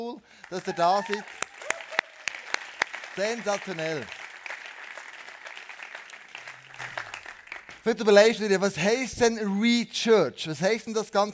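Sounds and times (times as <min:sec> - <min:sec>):
speech: 0:00.0 - 0:01.5, 0:03.2 - 0:04.2, 0:07.8 - 0:11.3
audience applause: 0:00.4 - 0:07.8.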